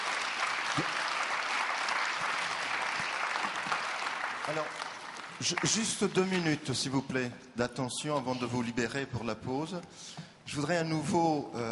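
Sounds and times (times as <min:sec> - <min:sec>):
audience applause: 0:00.0 - 0:06.4
speech: 0:00.8 - 0:01.0, 0:04.5 - 0:04.8, 0:05.4 - 0:11.6.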